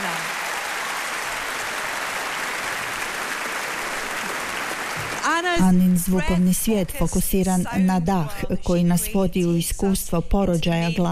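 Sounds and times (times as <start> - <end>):
concert audience applause after a live film score performance: 0.0 - 5.5
speech: 5.4 - 11.0.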